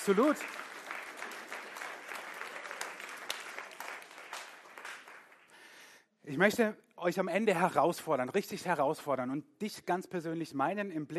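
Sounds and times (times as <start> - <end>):
speech: 0.0 - 0.7, 6.3 - 11.1
applause: 0.0 - 5.9.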